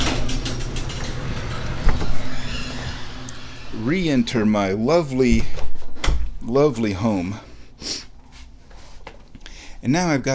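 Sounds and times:
garage door rolling shut: 0.0s - 4.6s
mechanical hum: 0.0s - 10.3s
speech: 3.8s - 5.6s, 6.5s - 8.0s, 9.8s - 10.3s.

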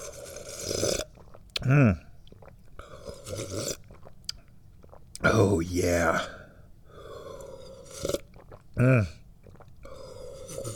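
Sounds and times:
slurping and drinking tea from a cup: 0.0s - 1.4s, 2.4s - 4.2s, 7.0s - 8.6s, 9.5s - 10.7s
speech: 1.7s - 2.1s, 5.5s - 6.4s, 8.8s - 9.2s
quiet mouth sounds: 5.2s - 6.6s, 8.8s - 9.2s.

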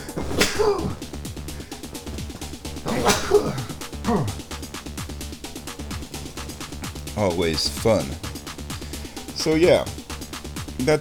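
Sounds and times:
person sneezing: 0.0s - 1.1s, 2.8s - 4.6s
rhythmic music-like backdrop: 0.0s - 10.9s
speech: 0.6s - 1.0s, 7.2s - 8.3s, 9.4s - 10.0s, 10.8s - 10.9s.

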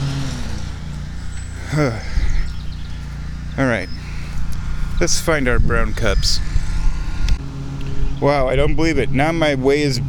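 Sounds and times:
lawn mower engine droning: 0.0s - 10.0s
speech: 1.7s - 2.2s, 3.6s - 4.0s, 5.0s - 6.5s, 8.2s - 10.0s.

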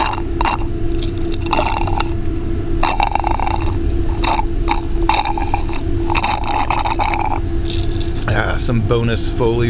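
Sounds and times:
slurping tea: 0.0s - 2.2s, 2.8s - 8.3s
gulping down a glass of tea: 0.0s - 8.4s
steady low hum: 0.0s - 9.6s
speech: 8.7s - 9.6s.

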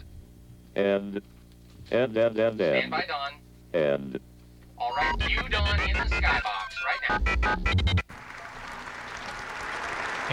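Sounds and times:
speech: 0.8s - 8.4s
audience applause during a presidential speech: 8.1s - 10.3s.

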